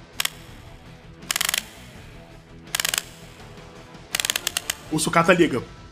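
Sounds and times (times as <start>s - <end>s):
winding key turning in robot: 0.0s - 1.9s, 2.7s - 3.4s, 4.1s - 4.9s
speech: 4.9s - 5.8s.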